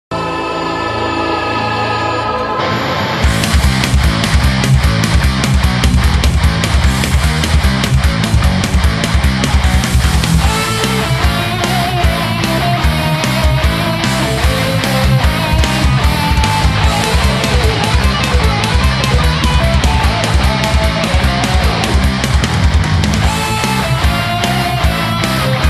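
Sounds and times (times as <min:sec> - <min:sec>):
metal cover song: 0:00.1 - 0:25.6.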